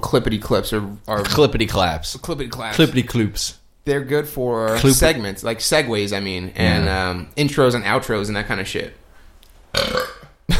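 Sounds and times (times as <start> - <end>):
speech: 0.1 - 9.0
loud drawn-out burp: 6.6 - 7.1, 9.7 - 10.4.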